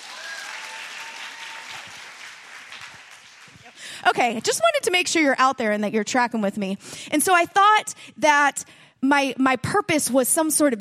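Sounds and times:
audience clapping loudly: 0.0 - 4.5
speech: 4.0 - 10.7.

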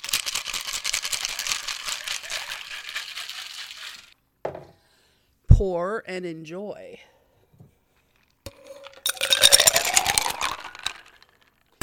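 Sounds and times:
ice rattling in a cocktail shaker being shaken: 0.0 - 4.2, 8.5 - 11.6
dull knock: 4.5 - 4.8
speech: 5.6 - 7.1.

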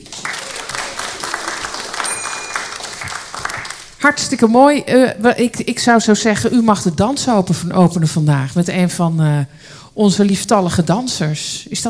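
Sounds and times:
crowd applause: 0.0 - 4.0
speech: 4.0 - 11.8.

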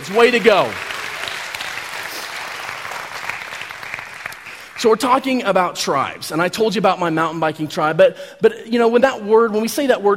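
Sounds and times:
speech: 0.0 - 0.9, 4.8 - 10.1
audience applause for parents: 0.0 - 4.9.

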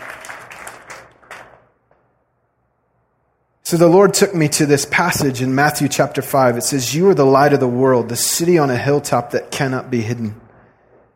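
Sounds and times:
crowd clapping: 0.0 - 2.1
speech: 3.7 - 10.4.

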